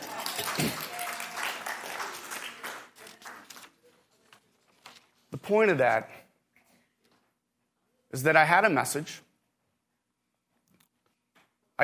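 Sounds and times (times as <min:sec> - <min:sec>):
audience applause: 0:00.0 - 0:03.6
speech: 0:05.4 - 0:06.2, 0:08.1 - 0:09.3.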